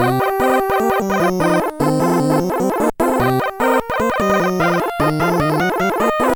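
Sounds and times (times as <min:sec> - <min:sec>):
funky chiptune: 0:00.0 - 0:06.3.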